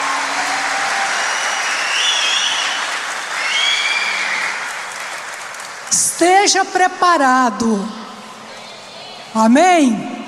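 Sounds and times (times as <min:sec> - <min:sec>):
audience applause: 0:00.0 - 0:06.0
speech: 0:06.2 - 0:08.0, 0:09.4 - 0:10.2.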